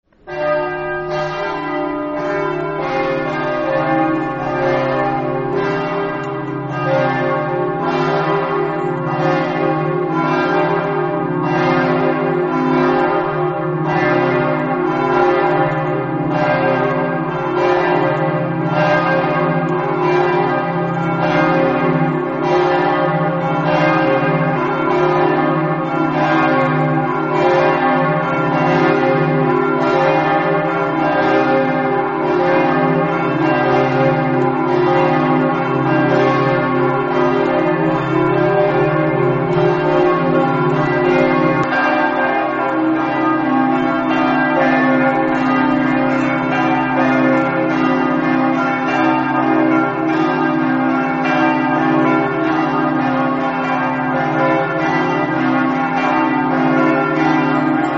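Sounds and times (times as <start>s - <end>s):
bells ringing: 0.3s - 57.9s.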